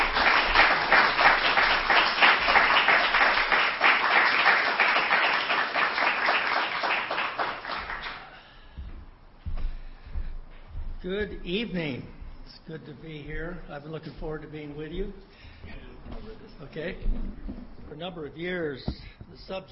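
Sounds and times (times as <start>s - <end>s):
audience applause welcoming a speaker: 0.0s - 8.4s
speech: 11.1s - 15.4s, 16.4s - 19.6s.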